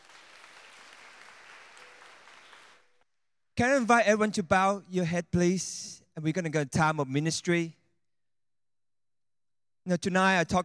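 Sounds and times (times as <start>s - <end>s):
audience clapping: 0.0s - 3.0s
speech: 3.6s - 7.8s, 9.8s - 10.6s.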